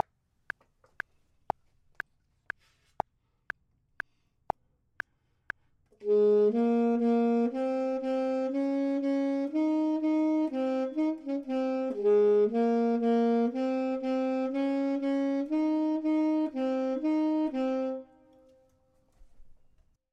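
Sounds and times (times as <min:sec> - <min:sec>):
saxophone: 0:06.0 - 0:18.7
clarinet: 0:06.0 - 0:18.8.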